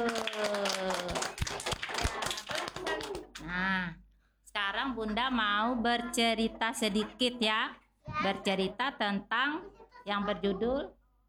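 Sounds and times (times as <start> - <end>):
children clapping hands: 0.0 - 3.5
speech: 5.0 - 11.0.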